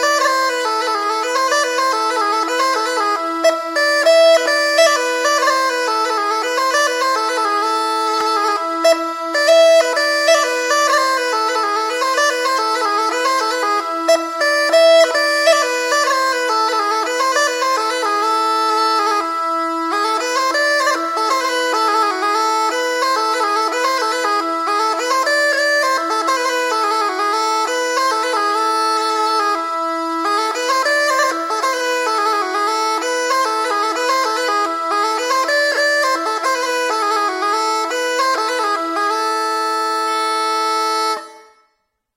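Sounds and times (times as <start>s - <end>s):
Swedish bagpipes: 0.0s - 41.6s.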